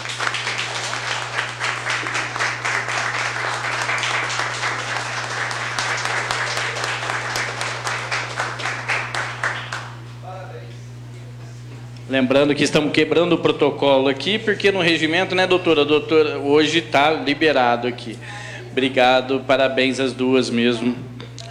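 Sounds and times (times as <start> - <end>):
audience applause in council chamber: 0.0 - 10.1
low electrical hum: 0.0 - 21.4
speech: 12.1 - 21.4.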